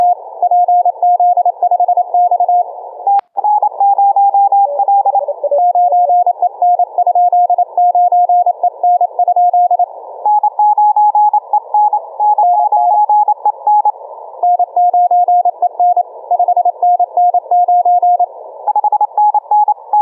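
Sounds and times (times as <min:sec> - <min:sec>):
CW morse code radio signals: 0:00.0 - 0:20.0.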